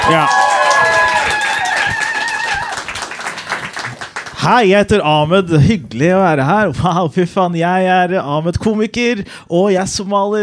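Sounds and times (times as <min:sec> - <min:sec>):
audience applause: 0:00.0 - 0:04.4
speech: 0:00.1 - 0:00.4, 0:04.4 - 0:10.4.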